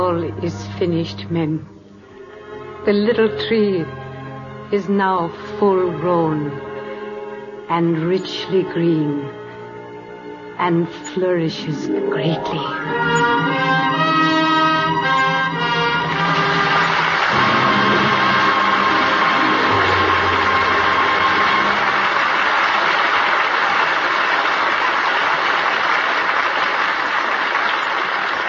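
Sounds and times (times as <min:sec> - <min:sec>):
orchestral chord: 0:00.0 - 0:04.7, 0:07.6 - 0:22.5
speech: 0:00.1 - 0:01.8, 0:02.8 - 0:04.0, 0:04.7 - 0:06.7, 0:07.7 - 0:09.4, 0:10.6 - 0:14.1
loud applause from a large audience: 0:16.1 - 0:28.4.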